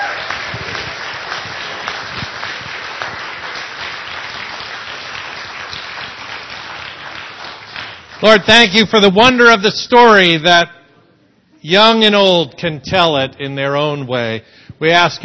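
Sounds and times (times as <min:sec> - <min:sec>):
audience applause: 0:00.0 - 0:08.4
speech: 0:08.2 - 0:10.8, 0:11.6 - 0:15.2.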